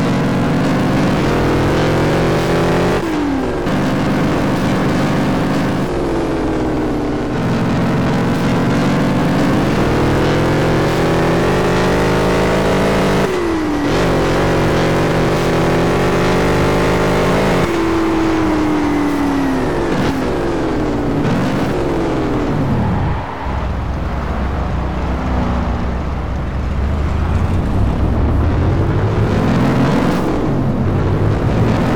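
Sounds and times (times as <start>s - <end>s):
Chevrolet Camaro Z28 engine: 0.0s - 31.9s.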